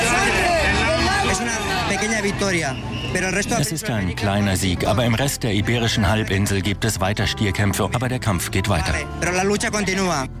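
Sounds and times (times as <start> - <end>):
crowd cheering and chanting: 0.0 - 3.6
speech: 2.3 - 10.3.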